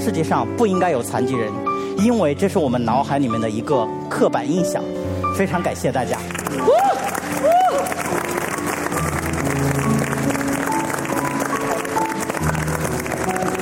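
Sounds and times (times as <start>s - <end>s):
speech: 0.0s - 8.0s
audience standing applause: 6.2s - 13.6s.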